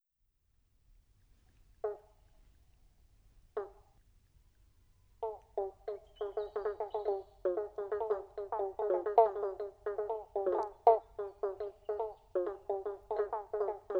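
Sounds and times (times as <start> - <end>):
pobblebonk frogs plunking: 5.2 - 13.9.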